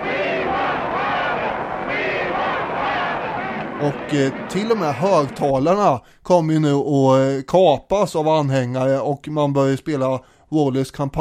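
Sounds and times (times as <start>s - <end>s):
applause: 0.0s - 5.5s
crowd cheering: 0.0s - 6.0s
speech: 3.8s - 11.1s.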